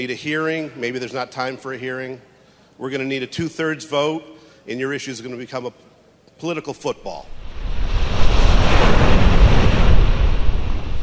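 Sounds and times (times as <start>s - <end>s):
speech: 0.0s - 7.4s
surf breaking on the beach at Hammonasset: 7.3s - 11.0s
cold gusting wind buffeting the microphone: 7.4s - 11.0s.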